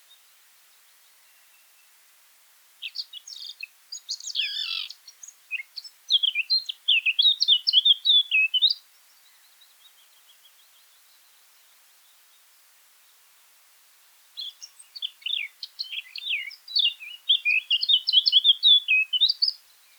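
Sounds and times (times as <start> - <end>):
Eurasian blackcap singing: 2.8 - 8.8, 14.4 - 19.9.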